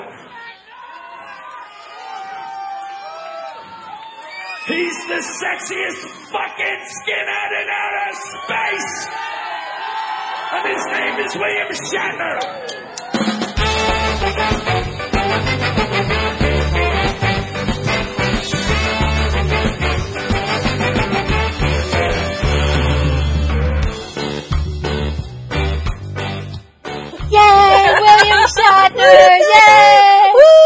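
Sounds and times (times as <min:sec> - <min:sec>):
speech: 0:04.7 - 0:09.5, 0:10.5 - 0:13.3
live band music: 0:13.0 - 0:28.7
laughter: 0:27.4 - 0:30.3.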